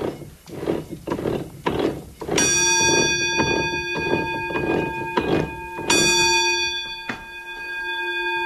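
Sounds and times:
clattering wooden mill machinery: 0:00.0 - 0:07.4
watermill roller-mill warning bell ringing: 0:02.4 - 0:08.4.

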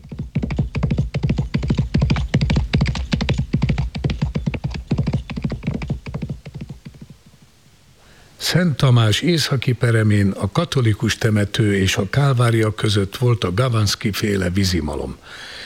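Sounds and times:
horses running, hooves clip-clopping: 0:00.0 - 0:07.6
speech: 0:08.5 - 0:15.6.

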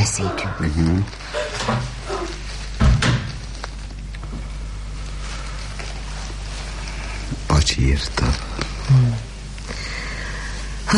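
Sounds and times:
speech: 0:00.1 - 0:01.9, 0:07.8 - 0:09.2
room door being closed: 0:02.8 - 0:03.3.

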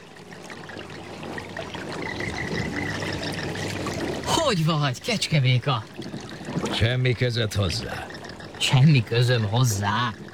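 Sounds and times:
babbling stream water trickling and gurgling: 0:00.0 - 0:10.3
speech: 0:04.5 - 0:10.2.

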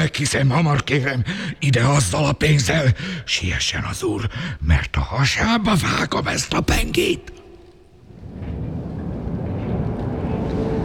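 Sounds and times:
speech: 0:00.0 - 0:07.4
distant noise of a late tram: 0:06.8 - 0:10.8.

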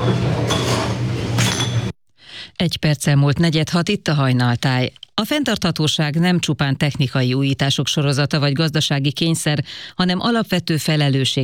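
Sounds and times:
glass jars clinking while being filled by hand with apricot jam: 0:00.0 - 0:01.9
speech: 0:02.6 - 0:11.4.

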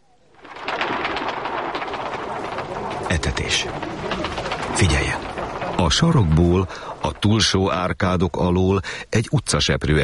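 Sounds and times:
flock of pigeons flying up in a square: 0:00.2 - 0:07.8
speech: 0:03.1 - 0:10.0.

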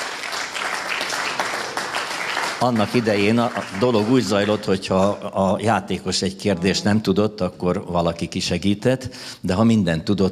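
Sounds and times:
studio audience applause: 0:00.0 - 0:05.2
speech: 0:02.6 - 0:10.3.

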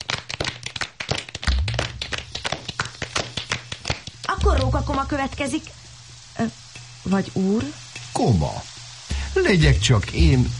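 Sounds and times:
applause, hands clapping: 0:00.0 - 0:05.4
speech: 0:04.4 - 0:05.8, 0:06.4 - 0:08.7, 0:09.3 - 0:10.5.

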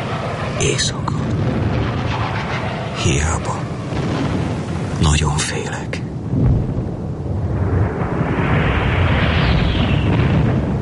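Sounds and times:
speech: 0:00.6 - 0:01.4, 0:03.0 - 0:04.2, 0:05.0 - 0:06.4
grenade explosion in a radio drama: 0:01.2 - 0:05.2, 0:06.2 - 0:10.8.

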